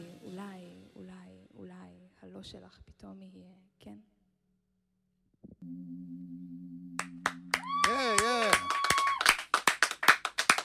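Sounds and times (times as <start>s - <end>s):
speech: 2.4s - 4.1s
audience clapping: 7.0s - 10.6s.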